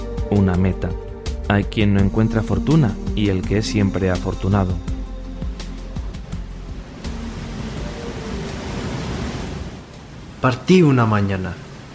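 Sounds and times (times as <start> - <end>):
speech: 0.3 - 4.9, 10.4 - 11.6
sea waves: 3.3 - 11.9.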